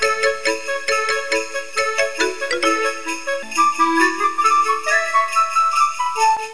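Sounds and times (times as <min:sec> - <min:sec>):
music box melody: 0:00.0 - 0:06.5.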